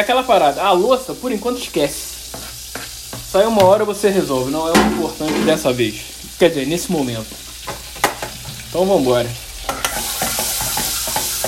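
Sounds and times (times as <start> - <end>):
speech: 0.0 - 2.4, 3.3 - 7.4, 8.7 - 9.4
food sizzling while being sautéed in a pan: 0.0 - 11.4
utensil stirring and scraping in a pan: 2.2 - 3.8, 4.7 - 5.8, 9.7 - 11.4.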